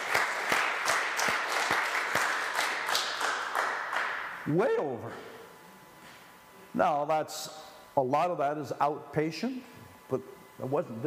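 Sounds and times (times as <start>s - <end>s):
crowd applauding: 0.0s - 4.4s
speech: 4.4s - 5.3s, 6.7s - 11.0s.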